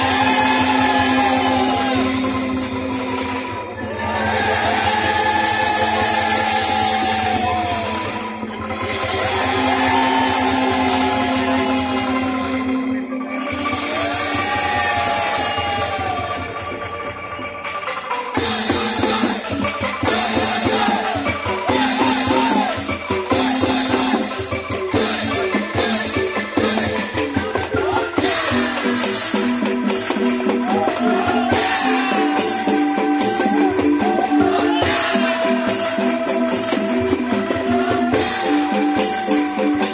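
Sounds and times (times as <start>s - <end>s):
sustained wavering melodic tones: 0.0s - 39.9s
traditional kentongan music at a festival in Banyumas Regency, Central Java, Indonesia: 0.0s - 39.9s.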